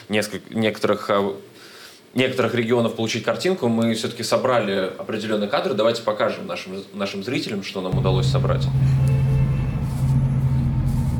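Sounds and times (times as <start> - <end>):
speech: 0.1 - 9.0
tank engines rumbling near the Belgorod-region settlement of Gorkovsky: 8.0 - 11.1.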